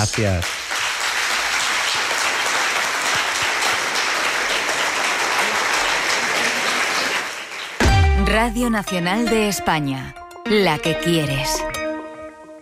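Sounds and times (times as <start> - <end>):
speech: 0.0 - 0.6, 8.3 - 11.7
audience applause: 0.0 - 8.0.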